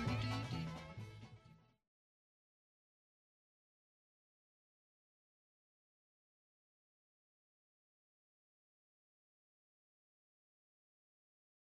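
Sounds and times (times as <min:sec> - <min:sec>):
banjo jingle: 0:00.0 - 0:01.6.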